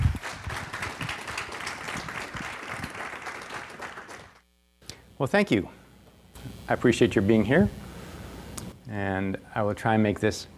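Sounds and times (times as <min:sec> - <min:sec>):
audience applause welcoming a speaker to a lecture on cancer and nutrition: 0:00.0 - 0:04.4
speech: 0:05.2 - 0:05.8, 0:06.7 - 0:07.8, 0:08.9 - 0:10.5.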